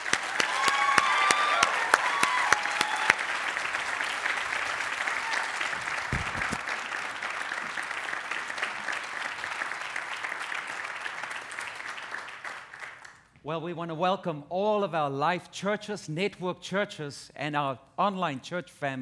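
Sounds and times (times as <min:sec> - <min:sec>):
audience applause welcoming a guest pastor at Life Church: 0:00.0 - 0:13.2
speech: 0:13.5 - 0:19.0.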